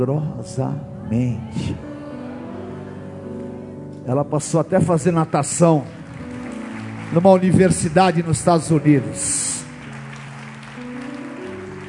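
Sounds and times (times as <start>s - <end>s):
speech: 0.0s - 1.9s, 4.0s - 6.0s, 7.1s - 9.4s
audience applauding: 5.2s - 11.8s.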